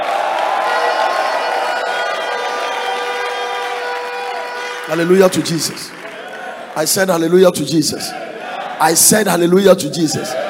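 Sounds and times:
audience shouting in praise: 0.0s - 6.8s, 8.0s - 9.2s, 10.1s - 10.4s
audience clapping in praise: 0.0s - 8.7s
speech: 4.9s - 6.0s, 6.8s - 10.4s.

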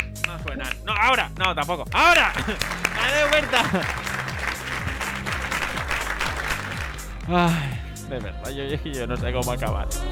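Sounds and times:
speech: 0.4s - 4.1s, 7.3s - 10.0s
applause: 1.4s - 7.3s
laughter: 2.2s - 7.6s.

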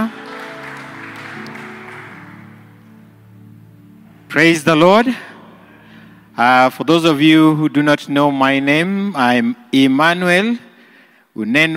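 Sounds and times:
audience hand clapping: 0.0s - 3.0s
speech: 4.3s - 5.3s, 6.4s - 10.7s, 11.4s - 11.7s.

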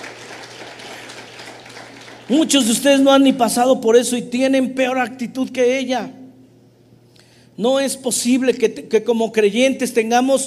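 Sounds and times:
applause: 0.0s - 2.8s
speech: 2.3s - 6.2s, 7.6s - 10.4s.

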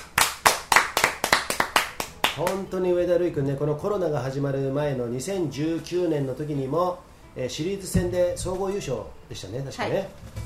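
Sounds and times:
hand clapping applause: 0.0s - 2.7s
speech: 2.4s - 10.4s.

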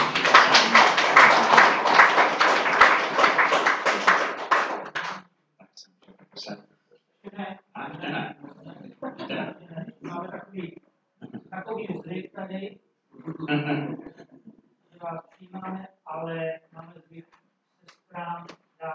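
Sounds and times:
crowd applause: 0.0s - 5.2s
laughter: 0.0s - 5.2s, 7.8s - 12.5s, 13.2s - 14.5s.

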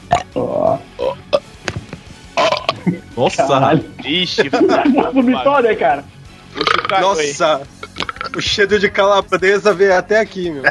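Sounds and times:
loud burp: 0.0s - 1.5s, 2.4s - 3.1s, 6.5s - 8.5s
speech: 0.4s - 0.9s, 3.2s - 7.8s, 8.4s - 10.6s
laughter: 2.9s - 5.4s.

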